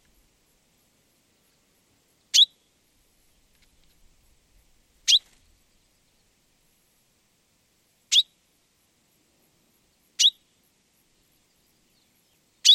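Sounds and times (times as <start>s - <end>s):
common chaffinch calling: 2.3s - 2.6s, 5.1s - 5.4s, 8.1s - 8.4s, 10.2s - 10.4s, 12.0s - 12.7s.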